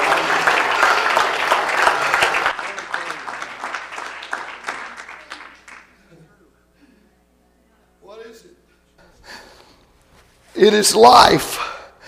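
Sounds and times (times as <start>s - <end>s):
audience clapping hands: 0.0s - 6.2s
speech: 10.6s - 11.7s.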